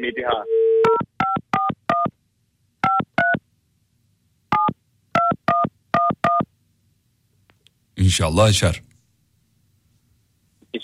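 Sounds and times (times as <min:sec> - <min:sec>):
speech: 0:00.0 - 0:00.7, 0:08.1 - 0:08.9
telephone number dialed on a keypad with dual-tone beeps: 0:02.8 - 0:03.4, 0:04.5 - 0:06.5.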